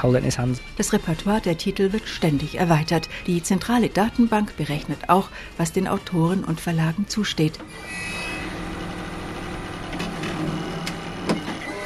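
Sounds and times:
speech: 0.0s - 8.1s
Espresso Book Machine printing, gluing, binding and trimming a book: 7.6s - 11.8s.

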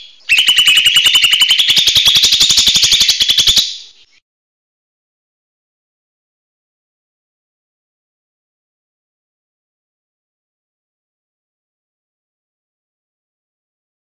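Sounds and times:
buzzy chattering bird song: 0.0s - 4.2s.

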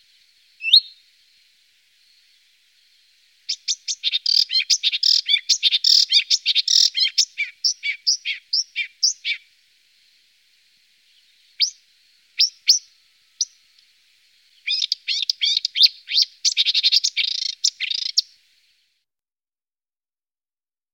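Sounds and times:
marsh warbler singing: 0.0s - 18.6s.

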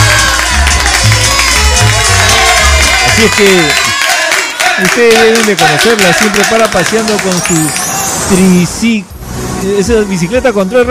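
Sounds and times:
audience applause: 0.0s - 7.9s
speech: 3.2s - 3.8s, 4.8s - 10.8s.

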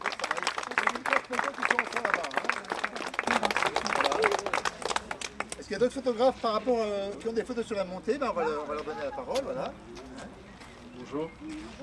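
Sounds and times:
audience applauding: 0.0s - 5.7s
laughter: 0.8s - 5.3s, 6.6s - 11.8s
speech: 1.3s - 2.4s, 5.7s - 10.1s, 11.1s - 11.8s.

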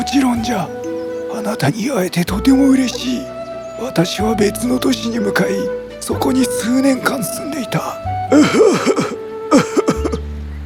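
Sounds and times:
speech: 0.1s - 9.7s
performer voicing labored heavy breathing of an old tree: 8.3s - 10.0s.

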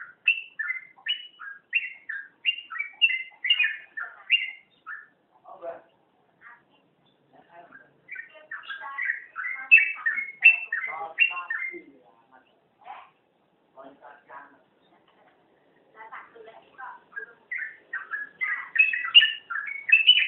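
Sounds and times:
oriental magpie-robin song of varied whistled and slurred notes: 0.0s - 5.2s, 7.0s - 11.9s, 17.1s - 20.2s.

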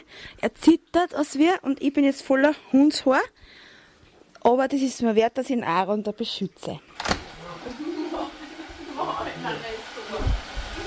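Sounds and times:
speech: 0.2s - 3.6s, 4.4s - 7.9s
hair dryer blowing: 7.0s - 10.8s.

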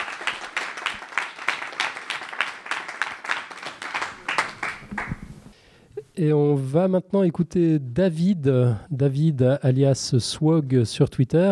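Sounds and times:
audience applause after a talk at a science event: 0.0s - 5.5s
speech: 6.2s - 11.4s.

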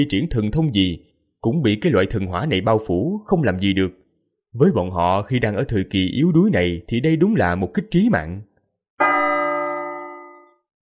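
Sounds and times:
speech: 0.0s - 8.5s
large golden bell ringing: 9.0s - 10.6s.

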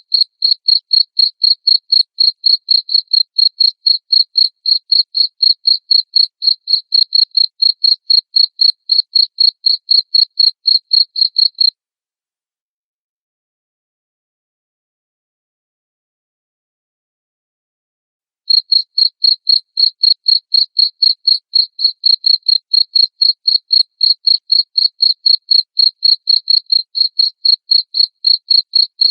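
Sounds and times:
cricket chirping: 0.0s - 11.7s, 18.5s - 29.0s
speech: 2.3s - 6.2s, 20.5s - 21.8s.

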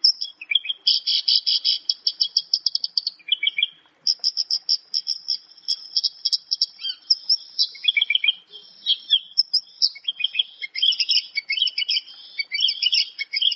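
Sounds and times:
Javan bush lark singing: 0.0s - 13.5s.

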